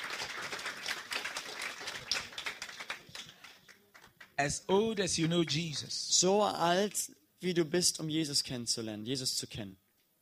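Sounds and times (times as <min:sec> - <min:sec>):
crowd clapping: 0:00.0 - 0:05.8
speech: 0:04.4 - 0:09.8.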